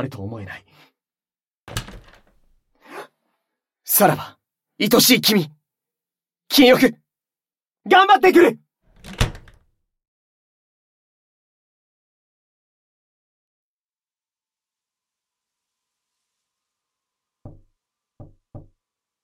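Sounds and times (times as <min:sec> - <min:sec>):
speech: 0:00.0 - 0:00.9, 0:03.9 - 0:05.6, 0:06.5 - 0:07.0, 0:07.8 - 0:09.2
knocking on a door: 0:17.4 - 0:18.8.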